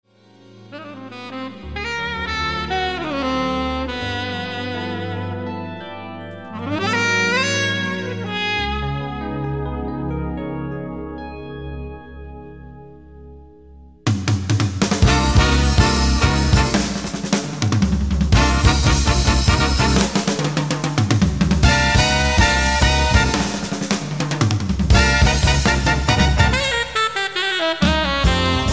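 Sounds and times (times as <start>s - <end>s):
samba music: 1.1s - 5.6s, 6.5s - 9.4s, 14.1s - 28.7s.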